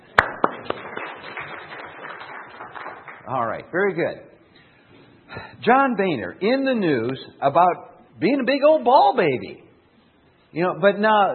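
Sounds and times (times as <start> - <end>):
audience applause: 0.1 - 3.7
speech: 3.3 - 4.3, 5.3 - 9.6, 10.5 - 11.3.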